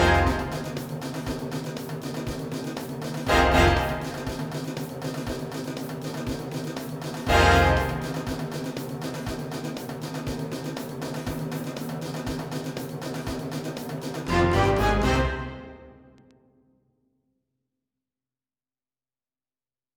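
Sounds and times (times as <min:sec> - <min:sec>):
funky percussion: 0:00.0 - 0:15.8.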